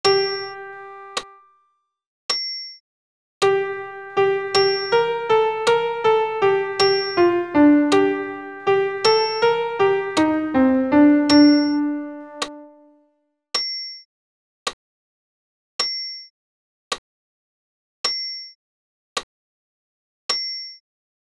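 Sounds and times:
solo piano Credo piece: 0:00.0 - 0:01.3, 0:03.4 - 0:12.9.

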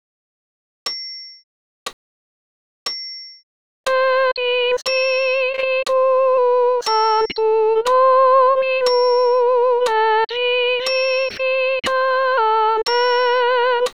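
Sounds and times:
solo soprano voice singing: 0:03.9 - 0:13.9.

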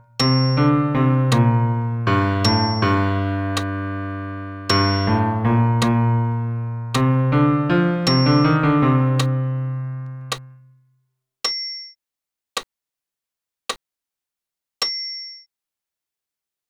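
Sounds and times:
solo piano bass part: 0:00.0 - 0:10.7.

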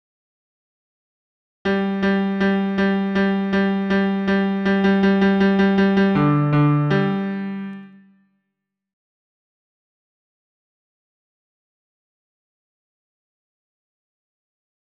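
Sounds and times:
solo piano bass line: 0:01.7 - 0:08.0.

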